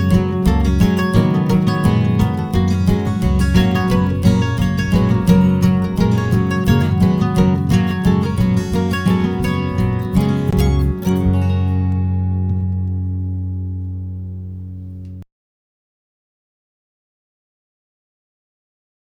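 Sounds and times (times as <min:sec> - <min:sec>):
jam session: 0:00.0 - 0:15.2.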